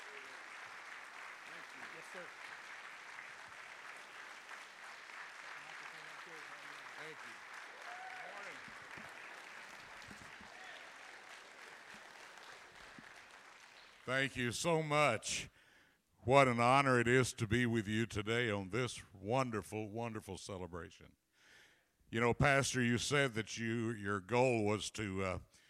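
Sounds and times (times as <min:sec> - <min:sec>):
church congregation applauding a guest speaker at a morning service: 0:00.0 - 0:14.5
speech: 0:02.2 - 0:02.4, 0:07.1 - 0:07.5, 0:14.1 - 0:15.5, 0:16.2 - 0:21.2, 0:22.1 - 0:25.6.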